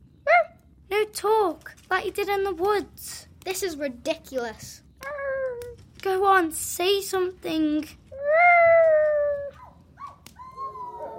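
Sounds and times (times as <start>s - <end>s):
speech: 1.1s - 4.8s, 6.0s - 8.0s
wolves howling outside: 8.3s - 11.1s.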